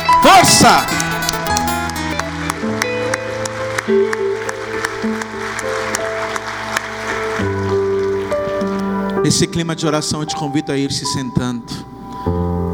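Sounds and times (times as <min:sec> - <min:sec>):
audience applause: 0:00.0 - 0:09.2
speech: 0:00.2 - 0:01.0, 0:09.3 - 0:12.6.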